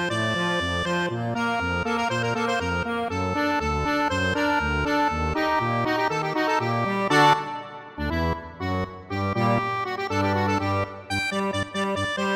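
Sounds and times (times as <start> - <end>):
accordion playing a Hungarian dance: 0.0 - 12.3.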